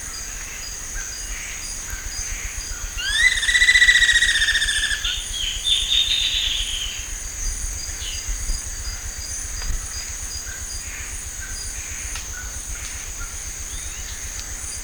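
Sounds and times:
bird call: 3.0 - 6.9.

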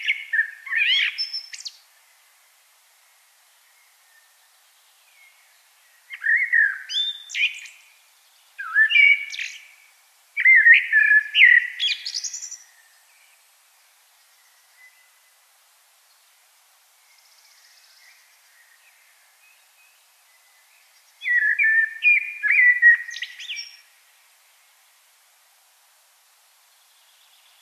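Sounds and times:
common blackbird singing: 0.0 - 1.8, 5.1 - 7.9, 8.6 - 9.8, 10.4 - 13.3, 17.1 - 23.9.

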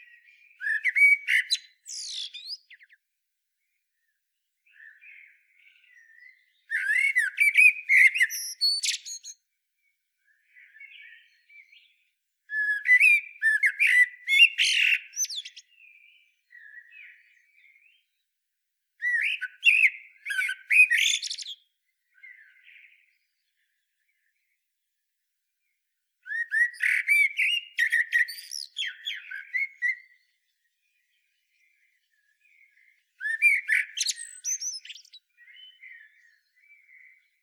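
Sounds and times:
common blackbird singing: 0.0 - 3.0, 4.7 - 9.4, 10.4 - 18.2, 19.0 - 24.1, 26.2 - 37.4.

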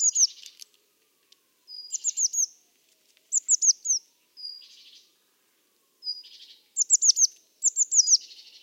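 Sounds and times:
Eurasian blue tit calling: 0.0 - 0.5, 1.7 - 2.5, 3.3 - 5.0, 6.0 - 8.6.

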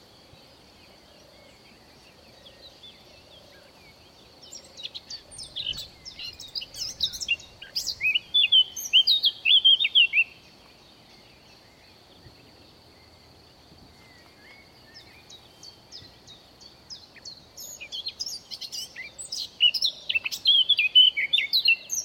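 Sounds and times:
Eurasian blackcap Sylvia atricapilla song: 3.8 - 12.0, 14.0 - 22.0.

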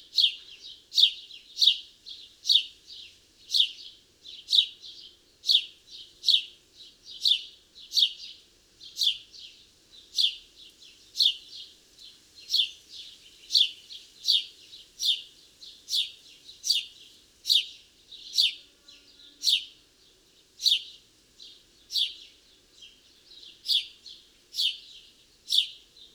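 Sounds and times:
house sparrow chirping: 0.1 - 6.5, 7.1 - 11.7, 12.4 - 18.6, 19.4 - 19.8, 20.6 - 26.1.

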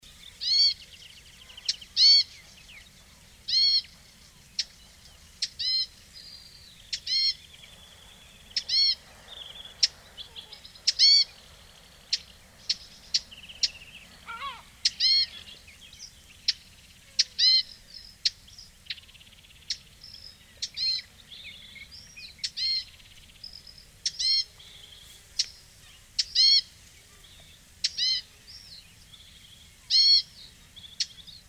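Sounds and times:
loud nasal harmonic calls: 0.2 - 31.4.

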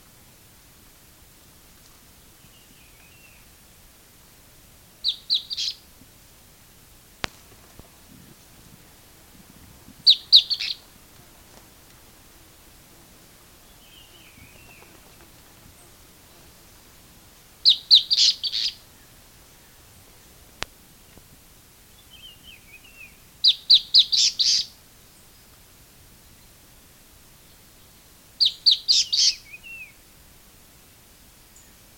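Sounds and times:
bird chirping: 5.0 - 5.8, 10.0 - 10.9, 13.6 - 16.9, 17.6 - 20.0, 22.0 - 25.5, 27.4 - 30.0.

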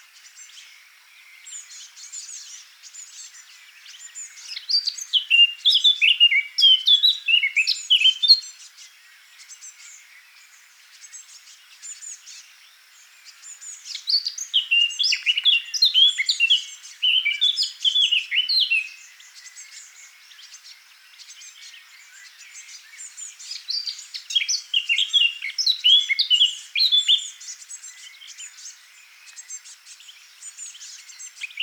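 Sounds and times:
Eurasian blackcap singing: 4.2 - 8.4, 13.9 - 19.8, 22.2 - 28.7, 29.4 - 31.6.

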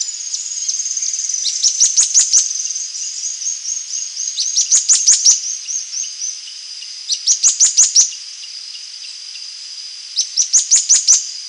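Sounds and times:
bird calls: 0.0 - 9.5, 10.2 - 11.3.

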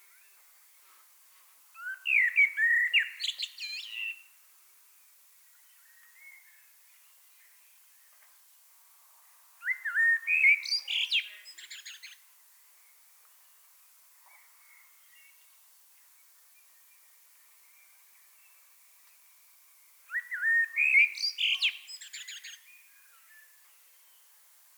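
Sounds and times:
common blackbird singing: 1.8 - 4.2, 9.6 - 12.2, 20.1 - 23.4.

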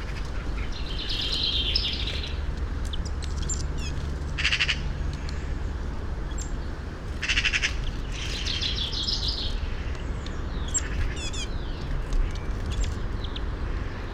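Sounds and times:
common chaffinch calls, Fringilla coelebs: 0.0 - 5.6, 6.3 - 13.5.

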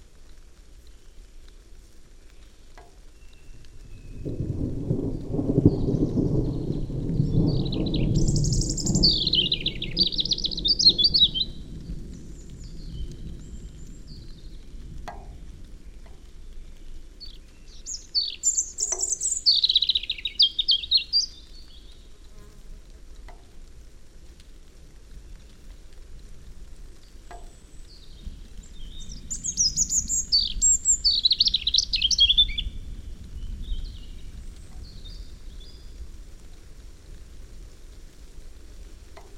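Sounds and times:
low rumbling noise: 3.5 - 39.3
European robin singing: 5.6 - 22.1, 27.3 - 36.0.

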